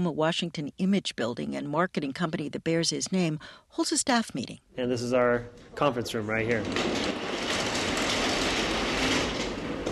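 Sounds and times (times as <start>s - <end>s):
speech: 0.0s - 7.3s
transparent garage door being pulled down: 5.7s - 9.9s.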